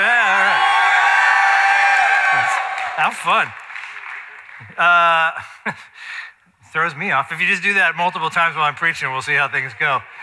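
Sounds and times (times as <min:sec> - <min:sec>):
audience yelling: 0:00.0 - 0:03.5
speech: 0:03.0 - 0:03.6, 0:04.7 - 0:10.2.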